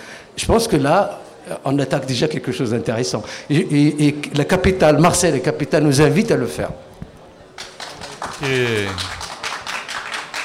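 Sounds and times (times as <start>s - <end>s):
speech: 0.4s - 6.9s, 8.4s - 9.2s
audience applause: 7.6s - 10.4s.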